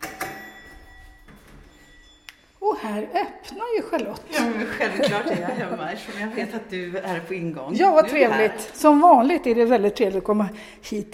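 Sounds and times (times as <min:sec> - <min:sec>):
doorbell ringing: 0:00.0 - 0:02.6
speech: 0:02.8 - 0:11.1
laughter: 0:04.3 - 0:06.9.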